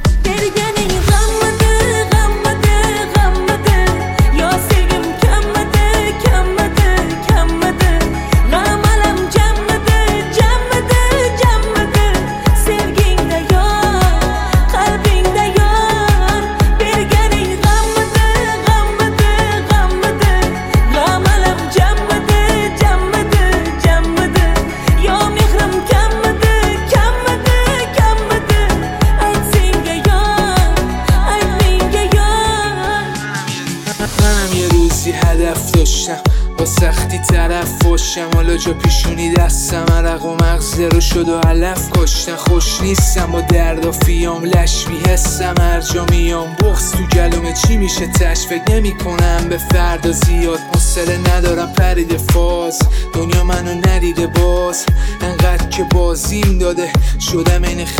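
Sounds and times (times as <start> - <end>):
rap music: 0.0 - 57.9.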